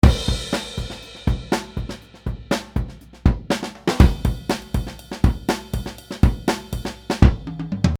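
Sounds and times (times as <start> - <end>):
drums: 0.0 - 7.9.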